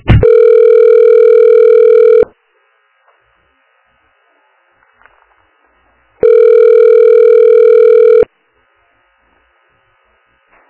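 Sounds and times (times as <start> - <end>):
telephone call-transfer beeps: 0.3 - 2.3, 6.2 - 8.3.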